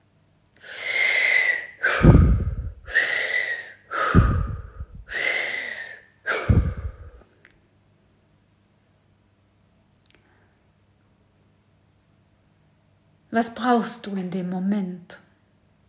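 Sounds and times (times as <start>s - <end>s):
deep rhythmic breathing: 0.6s - 7.4s
speech: 13.4s - 15.2s.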